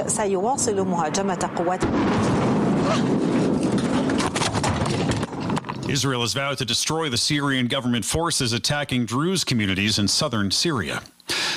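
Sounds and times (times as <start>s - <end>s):
speech: 0.1s - 4.3s, 5.9s - 11.5s
Israeli airstrike explosion on Syria's Defense Ministry in Damascus: 0.5s - 6.2s
rough roar after the airstrike blast: 1.0s - 5.9s.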